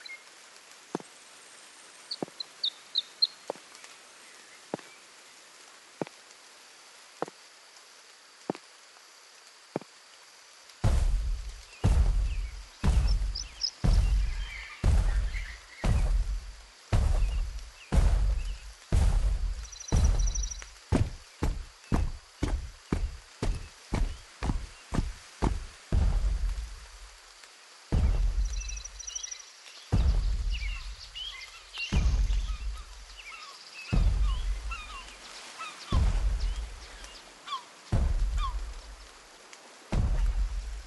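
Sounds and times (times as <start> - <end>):
footsteps: 9.8 - 10.0, 10.8 - 29.1, 29.9 - 31.2, 31.8 - 33.2, 33.9 - 37.1, 37.9 - 39.3, 39.9 - 40.8.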